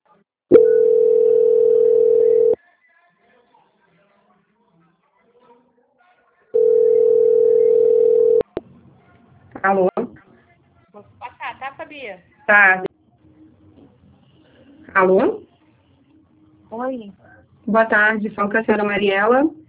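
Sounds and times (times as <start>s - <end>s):
steady mid-pitched telephone tone while a sales call is transferred: 0.5s - 2.6s, 6.6s - 8.5s
speech: 12.5s - 12.9s, 15.0s - 15.4s, 17.7s - 19.6s.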